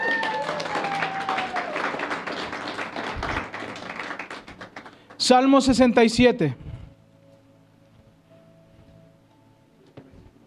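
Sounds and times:
audience applause: 0.0s - 5.2s
speech: 5.3s - 6.6s.

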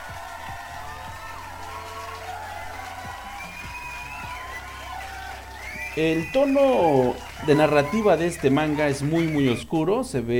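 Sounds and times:
crowd applauding: 0.0s - 10.0s
laughter: 0.0s - 10.3s
whistles: 1.7s - 9.7s
speech: 6.0s - 10.3s.

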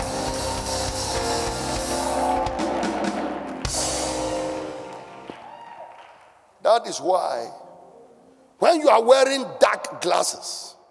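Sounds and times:
large crowd clapping: 0.0s - 6.4s
speech: 6.8s - 7.6s, 8.6s - 10.8s.

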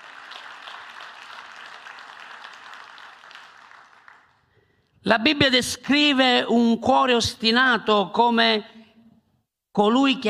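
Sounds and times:
audience applauding: 0.0s - 4.6s
speech: 5.0s - 8.7s, 9.8s - 10.2s.

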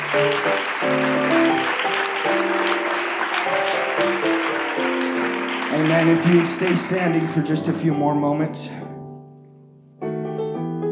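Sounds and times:
large crowd clapping: 0.0s - 7.6s
speech: 0.1s - 0.6s, 5.9s - 8.9s.

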